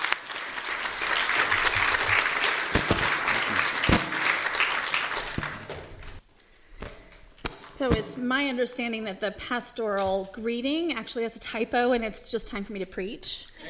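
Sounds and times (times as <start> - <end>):
audience applause: 0.0 - 6.2
speech: 7.8 - 13.6.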